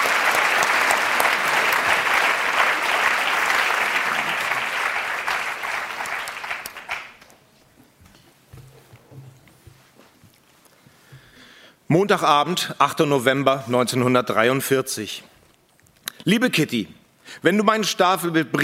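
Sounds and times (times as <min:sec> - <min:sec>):
applause: 0:00.0 - 0:07.4
speech: 0:11.9 - 0:15.3, 0:16.2 - 0:18.6.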